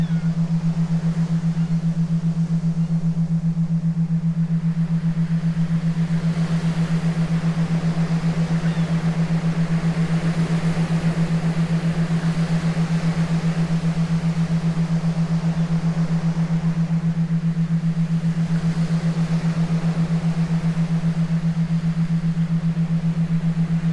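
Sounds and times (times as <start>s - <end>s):
theta binaural beats for meditation: 0.0s - 23.9s.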